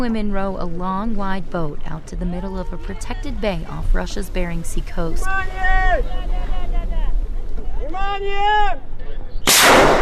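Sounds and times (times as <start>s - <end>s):
speech: 0.0s - 6.7s, 7.9s - 8.9s
voices calling out in gliding tones: 0.0s - 9.4s
flare fired into the air: 9.5s - 9.9s.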